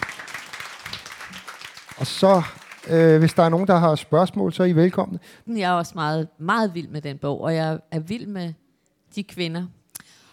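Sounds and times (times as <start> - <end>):
audience applause: 0.0 - 3.8
speech: 2.0 - 9.8.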